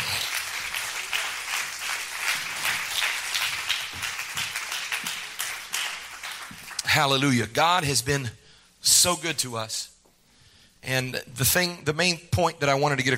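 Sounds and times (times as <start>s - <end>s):
crowd clapping: 0.0s - 7.2s
speech: 7.0s - 9.9s, 10.8s - 13.1s.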